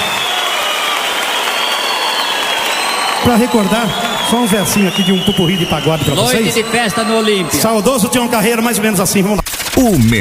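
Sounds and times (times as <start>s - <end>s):
audience applause for a family of singers at a show: 0.0s - 7.9s
speech: 3.2s - 10.2s.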